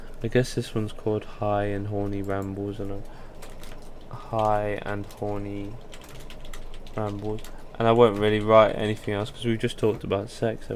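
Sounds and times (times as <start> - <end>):
speech: 0.2 - 3.2, 4.1 - 5.9, 7.0 - 10.7
computer keyboard typing a title: 1.7 - 10.2.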